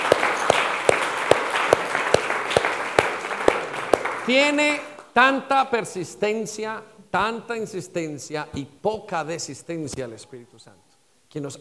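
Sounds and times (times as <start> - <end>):
audience applause: 0.0 - 4.3
speech: 4.3 - 11.5.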